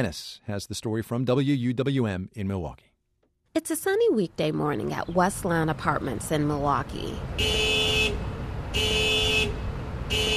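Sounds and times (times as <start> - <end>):
speech: 0.0 - 2.9, 3.6 - 7.9
car alarm: 7.4 - 10.3.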